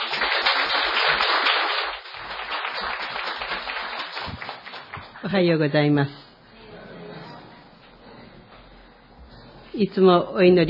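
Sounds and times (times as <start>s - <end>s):
crowd applause: 0.0s - 5.2s
speech: 5.2s - 6.2s, 9.8s - 10.6s.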